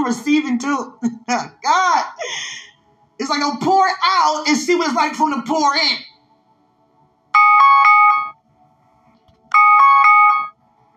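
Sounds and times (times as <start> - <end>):
speech: 0.1 - 2.5, 3.2 - 6.1
alarm going off: 7.4 - 8.4, 9.5 - 10.6.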